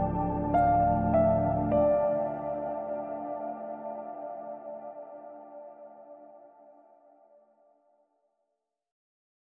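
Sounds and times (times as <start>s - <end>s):
solo piano: 0.0s - 6.2s.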